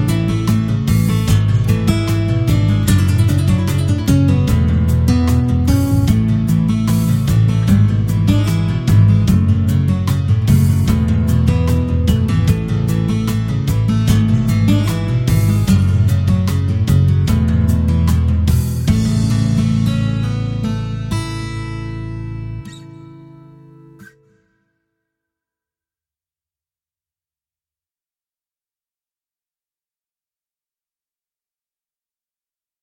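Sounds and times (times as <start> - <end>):
music track at 150 bpm in A sharp: 0.0 - 24.4.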